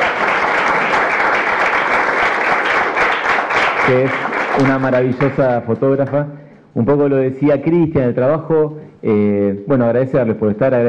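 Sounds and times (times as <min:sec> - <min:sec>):
audience applause: 0:00.0 - 0:05.4
speech: 0:03.9 - 0:10.8.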